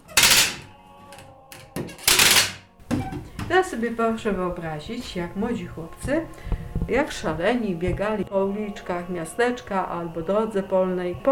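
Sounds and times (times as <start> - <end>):
wooden ritual ratchet noisemaker (tarapat) cranked: 0.0 - 0.6, 1.6 - 2.6
speech: 3.5 - 11.3.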